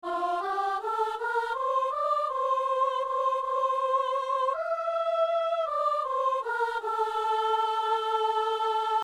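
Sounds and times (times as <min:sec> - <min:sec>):
tenor singing a psalm: 0:00.0 - 0:09.0.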